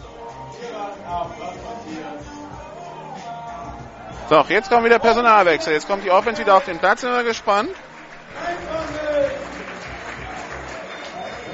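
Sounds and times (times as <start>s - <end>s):
speech: 1.0s - 2.6s, 4.3s - 8.7s
crowd applause: 4.3s - 11.5s.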